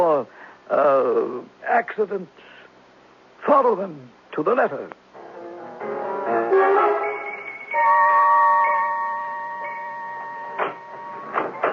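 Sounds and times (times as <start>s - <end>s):
speech: 0.2s - 2.5s, 3.4s - 5.0s
electronic alarm warbling and whining: 6.8s - 11.7s.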